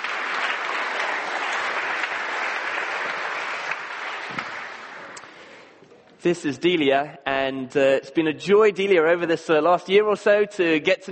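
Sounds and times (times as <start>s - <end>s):
audience applause at a church service: 0.0s - 5.6s
speech: 6.2s - 11.1s.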